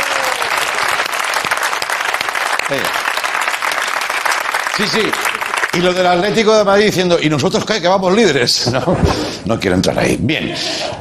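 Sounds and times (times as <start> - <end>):
applause: 0.0 - 6.6
speech: 2.7 - 3.1, 4.8 - 10.9.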